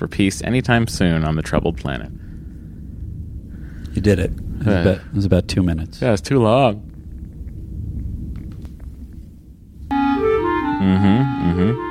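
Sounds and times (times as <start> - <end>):
speech: 0.0 - 2.3, 4.0 - 6.9, 10.8 - 11.8
low rumbling noise: 0.0 - 11.8
yawning theme musical jingle: 9.9 - 11.8.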